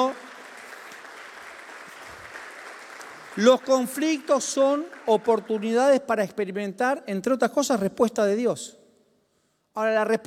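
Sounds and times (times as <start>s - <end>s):
audience applauding: 0.0s - 6.0s
speech: 3.4s - 8.8s, 9.8s - 10.2s.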